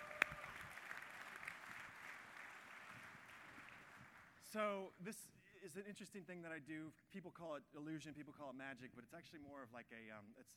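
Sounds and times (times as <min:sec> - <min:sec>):
audience applause: 0:00.0 - 0:04.4
speech: 0:04.5 - 0:10.5.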